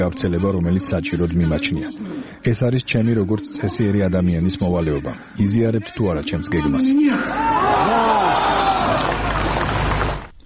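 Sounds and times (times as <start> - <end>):
speech: 0.0 - 9.3
crowd at a rally shouting enthusiastically: 7.2 - 9.9.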